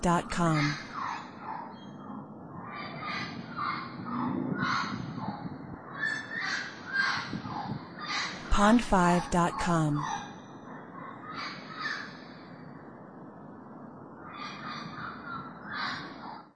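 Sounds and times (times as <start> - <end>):
speech: 0.0 - 0.8, 8.6 - 10.2
bird cawing: 2.6 - 8.5, 10.0 - 12.9, 14.2 - 16.5.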